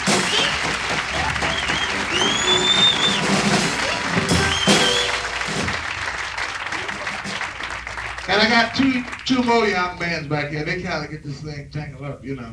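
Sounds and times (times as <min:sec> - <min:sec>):
laughter: 0:00.0 - 0:10.1
audience applause: 0:00.0 - 0:10.2
speech: 0:08.4 - 0:12.5.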